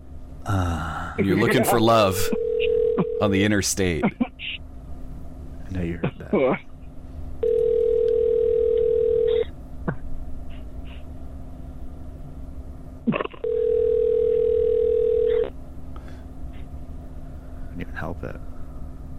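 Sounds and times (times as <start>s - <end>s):
low phone line hum: 0.0s - 19.1s
speech: 0.5s - 4.6s, 5.7s - 6.7s
phone call ringing unanswered: 2.1s - 3.3s, 7.4s - 9.3s, 13.4s - 15.4s.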